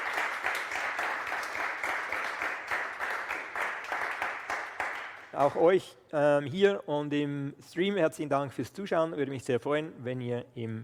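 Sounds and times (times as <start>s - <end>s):
audience applause: 0.0s - 5.6s
speech: 5.4s - 10.8s.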